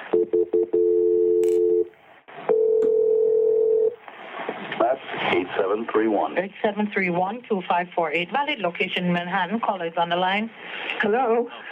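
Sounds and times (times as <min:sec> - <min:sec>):
speech: 0:00.1 - 0:01.0, 0:05.4 - 0:11.7
telephone ringing during emergency call transfer: 0:00.1 - 0:01.9, 0:02.5 - 0:04.0.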